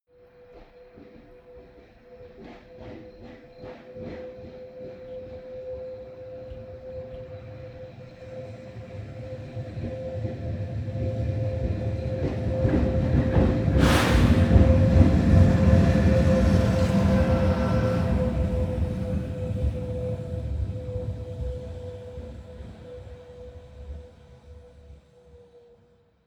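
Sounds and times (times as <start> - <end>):
train locomotive driving by with hum: 5.9 - 23.2.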